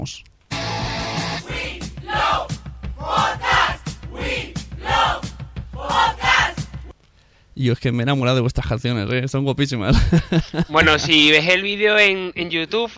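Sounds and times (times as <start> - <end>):
speech: 0.0 - 0.3, 7.6 - 12.9
group of voices shouting a rhythmic chant: 1.4 - 6.7
laughter: 9.9 - 11.3.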